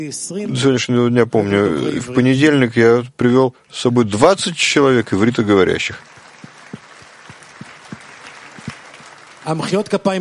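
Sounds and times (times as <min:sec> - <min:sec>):
speech: 0:00.0 - 0:06.2, 0:09.5 - 0:10.1
audience clapping: 0:05.0 - 0:10.1.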